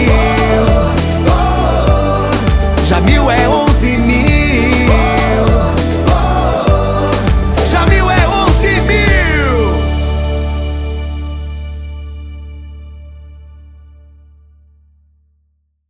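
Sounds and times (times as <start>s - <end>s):
jingle for a city councillor: 0.0s - 12.2s.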